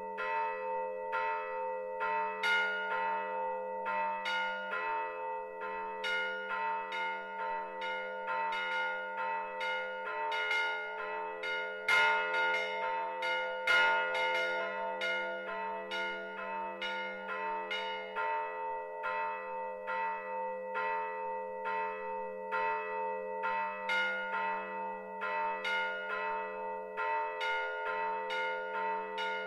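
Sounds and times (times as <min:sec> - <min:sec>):
church bells tolling for the dead: 0:00.0 - 0:29.4.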